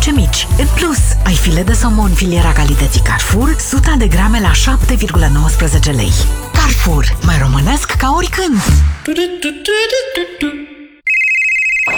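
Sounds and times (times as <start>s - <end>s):
speech: 0.1s - 10.7s
phone electronic ringtone: 11.1s - 11.9s.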